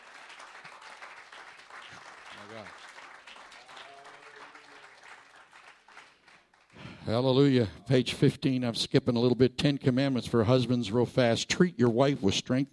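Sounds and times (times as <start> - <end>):
audience clapping hands: 0.0 - 7.5
speech: 2.4 - 2.9, 7.1 - 12.7.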